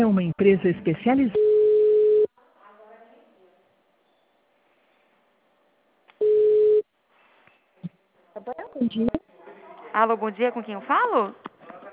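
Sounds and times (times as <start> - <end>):
speech: 0.0 - 1.5, 8.4 - 9.3, 10.0 - 11.5
electronic tones of a telephone call being transferred to another extension: 1.4 - 2.3, 6.2 - 6.8.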